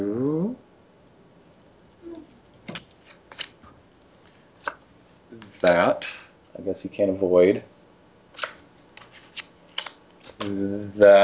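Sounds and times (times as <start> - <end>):
playing cards being dealt in a video game poker round: 2.6 - 4.8, 8.4 - 10.6
speech: 5.6 - 7.7, 10.5 - 11.2.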